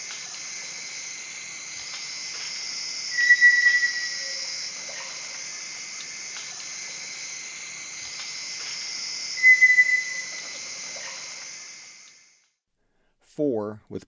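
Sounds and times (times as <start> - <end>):
Sunbittern whistles in the eastern lowlands of South America: 0.0 - 12.4.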